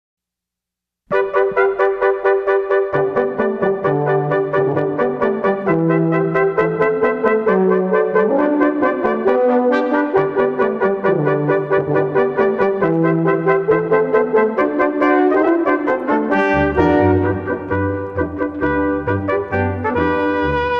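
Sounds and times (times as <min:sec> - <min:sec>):
brass playing: 0:01.1 - 0:20.7.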